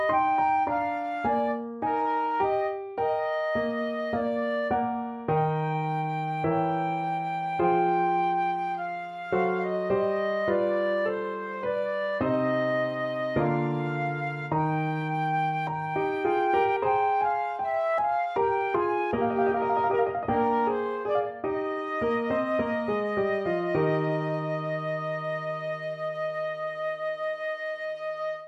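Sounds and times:
flute piece: 0.0 - 28.4.

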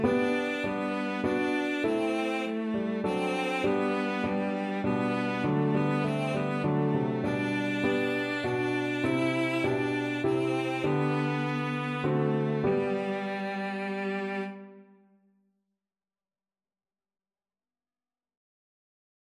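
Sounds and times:
violoncello: 0.0 - 15.1.

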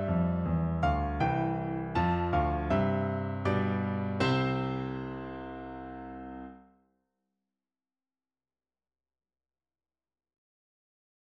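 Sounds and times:
piano duet: 0.0 - 6.6.

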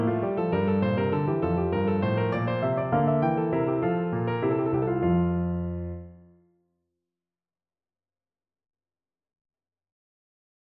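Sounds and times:
fugue on piano: 0.0 - 6.4.

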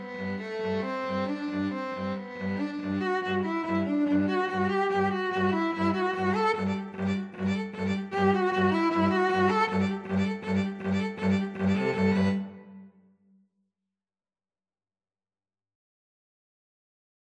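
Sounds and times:
two violins and cello playing a ballet dance piece: 0.0 - 12.7.

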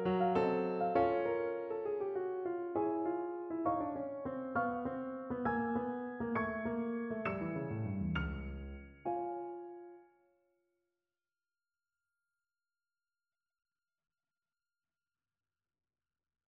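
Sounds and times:
piano: 0.0 - 10.2.

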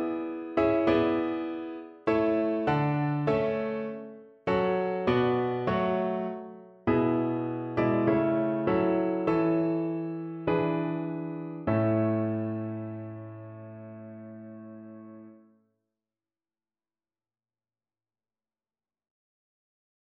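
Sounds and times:
national anthem played on piano: 0.0 - 15.4.

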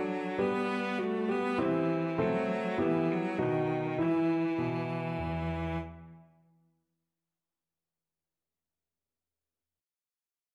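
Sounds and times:
cello playing an air: 0.0 - 6.4.

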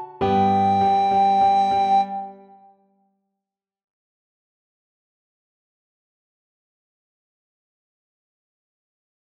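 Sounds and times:
fanfare played on a recorder: 0.0 - 2.4.

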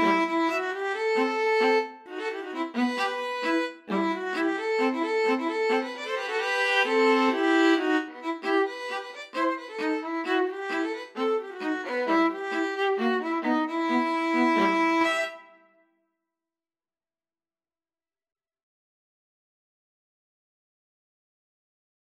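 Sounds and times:
string trio playing: 0.0 - 15.5.

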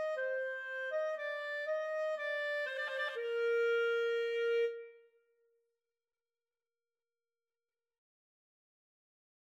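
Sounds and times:
clarinet duet playing a minuet: 0.0 - 5.1.

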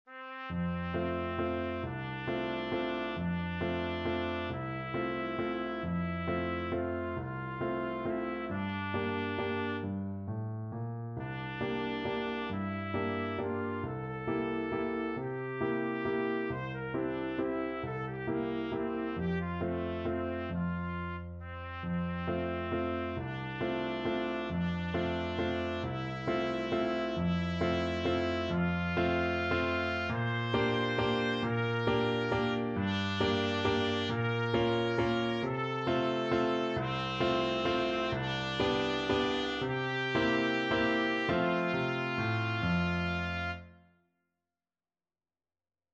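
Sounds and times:
trumpet: 0.1 - 10.2, 11.2 - 44.0.

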